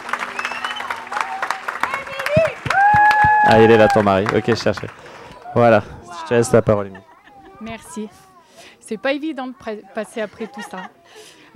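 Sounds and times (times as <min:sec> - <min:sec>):
audience applause: 0:00.0 - 0:06.8
speech: 0:03.5 - 0:11.5
laughter: 0:04.3 - 0:08.1, 0:10.0 - 0:11.5.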